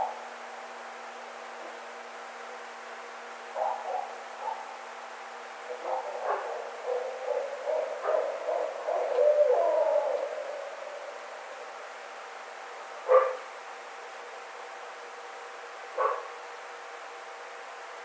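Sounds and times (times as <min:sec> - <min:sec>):
barred owl caterwauling hoots and cackles: 0:03.6 - 0:04.8, 0:05.6 - 0:12.0.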